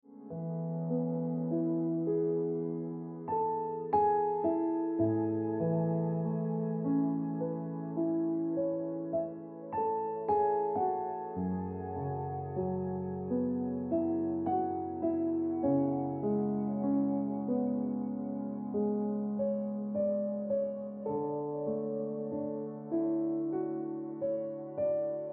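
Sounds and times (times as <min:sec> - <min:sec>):
piano ringtone music: 0:00.2 - 0:25.3.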